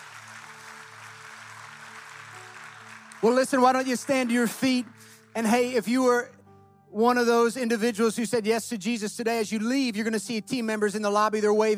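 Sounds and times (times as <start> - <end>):
audience clapping: 0.0 - 6.0
speech: 3.2 - 11.7.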